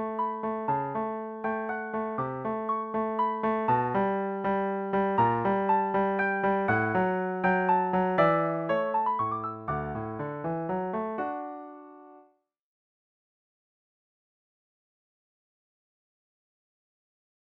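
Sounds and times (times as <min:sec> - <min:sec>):
waltz music: 0:00.4 - 0:12.1.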